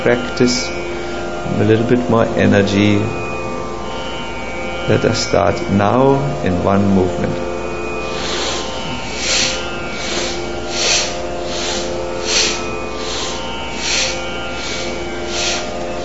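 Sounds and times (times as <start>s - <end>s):
speech: 0.0s - 0.8s, 1.4s - 3.2s, 4.9s - 7.4s
forceful breathing through the nose: 8.0s - 16.0s.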